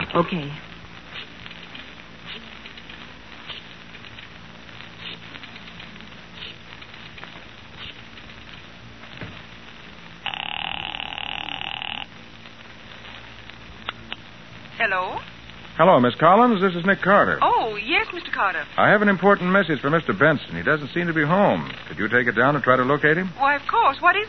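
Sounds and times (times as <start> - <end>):
crackly croaking background: 0.0 - 24.2
speech: 0.2 - 0.7, 15.8 - 24.2
telephone ringing: 10.2 - 12.1.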